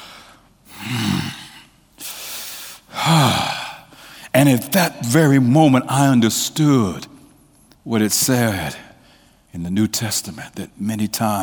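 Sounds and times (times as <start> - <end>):
breathy exhalations during prayer: 0.7 - 4.3
speech: 4.4 - 7.2, 7.9 - 8.9, 9.5 - 11.4.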